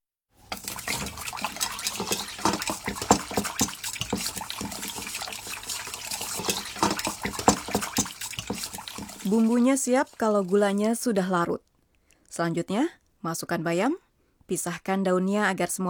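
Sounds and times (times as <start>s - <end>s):
dashi broth pouring into a bowl: 0.4s - 11.1s
speech: 9.3s - 11.7s, 12.4s - 15.8s.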